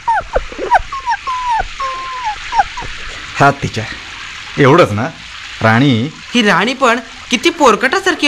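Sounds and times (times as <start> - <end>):
soaked shivering puppy whimpering outside: 0.0 - 3.1
speech: 3.4 - 4.0, 4.6 - 8.2.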